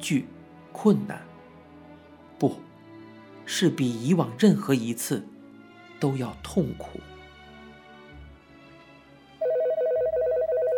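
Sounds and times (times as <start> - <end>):
speech: 0.0 - 1.3, 2.4 - 2.7, 3.5 - 5.3, 6.0 - 7.1
telephone ringing: 9.4 - 10.7.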